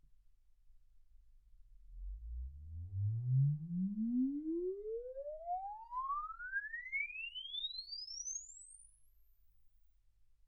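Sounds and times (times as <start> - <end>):
exponential sine sweep from 10 Hz to 24 kHz: 2.0 - 9.4.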